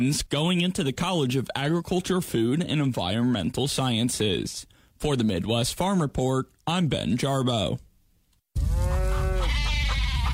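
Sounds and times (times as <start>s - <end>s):
speech: 0.0s - 7.9s
restless farm animals bleating: 8.8s - 10.3s.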